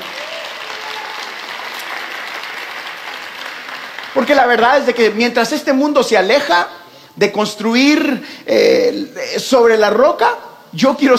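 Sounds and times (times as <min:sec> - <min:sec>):
audience applause: 0:00.0 - 0:05.2
speech: 0:04.2 - 0:11.1.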